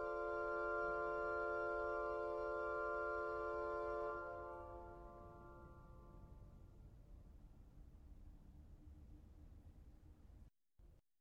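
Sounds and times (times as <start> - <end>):
Cavaille-Coll flutes: 0.0 - 5.3.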